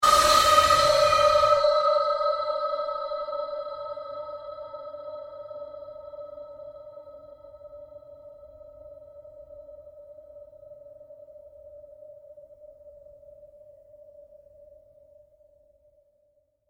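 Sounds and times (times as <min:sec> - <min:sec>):
long synthesized drone: 0:00.0 - 0:07.8.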